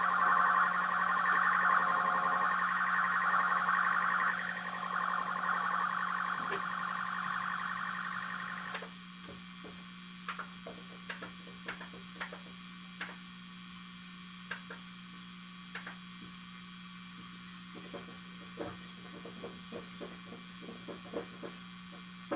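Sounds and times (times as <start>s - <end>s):
black ambient music: 0.0s - 8.8s.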